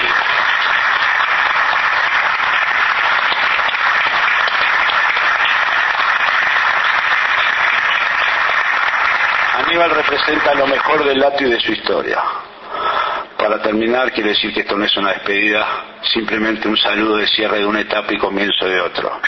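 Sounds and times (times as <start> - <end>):
audience applause: 0.0 - 11.7
speech: 9.8 - 12.4, 13.5 - 19.2.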